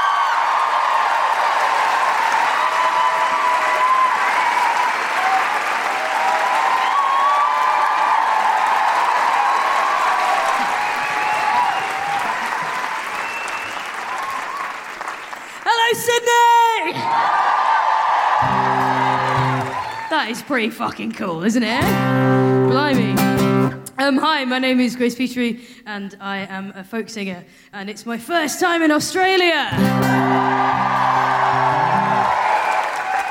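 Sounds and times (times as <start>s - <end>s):
whoops and cheers: 0.0s - 14.9s, 16.6s - 20.3s, 29.8s - 33.2s
large crowd applauding: 0.0s - 21.2s, 29.8s - 33.2s
speech: 20.2s - 23.2s, 24.1s - 32.3s.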